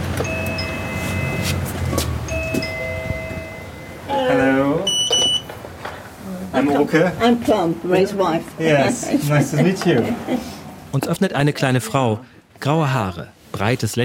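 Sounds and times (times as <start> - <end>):
doorbell ringing: 0.2 - 5.5
speech: 6.6 - 14.0.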